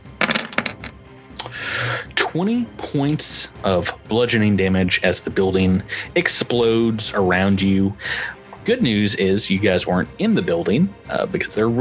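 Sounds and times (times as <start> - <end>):
dice clattering on a table: 0.2 - 1.0
speech: 2.3 - 11.7.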